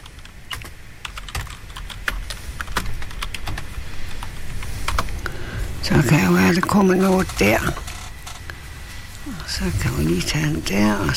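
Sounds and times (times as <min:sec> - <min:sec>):
typing a name on a computer keyboard: 0:00.0 - 0:04.3
speech: 0:05.9 - 0:07.8, 0:09.5 - 0:11.1.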